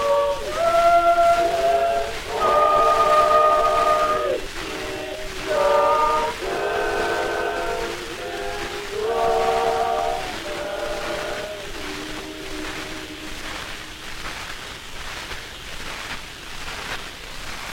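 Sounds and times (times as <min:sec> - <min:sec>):
gramophone playing: 0:00.0 - 0:13.9.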